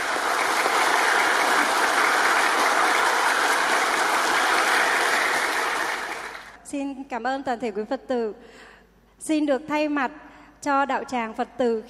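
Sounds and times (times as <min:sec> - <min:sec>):
large crowd clapping: 0:00.0 - 0:06.6
speech: 0:07.1 - 0:11.8.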